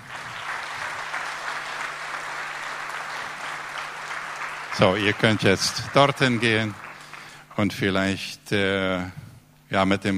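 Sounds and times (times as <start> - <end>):
audience applause: 0.0 - 7.5
speech: 4.8 - 6.8, 7.6 - 10.1.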